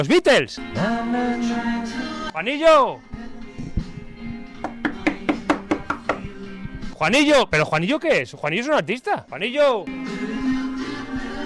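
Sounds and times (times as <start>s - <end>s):
speech: 0.0s - 3.2s, 7.0s - 10.4s
knocking on a door: 4.6s - 6.4s.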